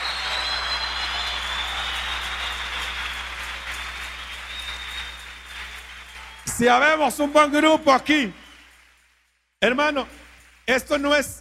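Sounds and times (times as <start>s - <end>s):
audience applause: 0.0s - 9.2s
speech: 6.6s - 8.4s, 9.6s - 11.4s.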